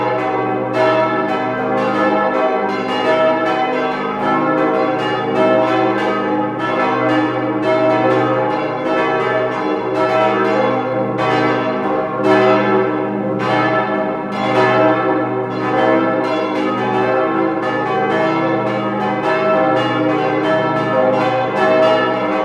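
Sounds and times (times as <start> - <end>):
bells: 0.0 - 22.4.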